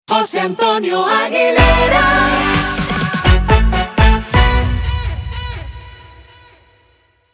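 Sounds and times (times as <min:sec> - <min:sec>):
vocals: 0:00.0 - 0:05.5.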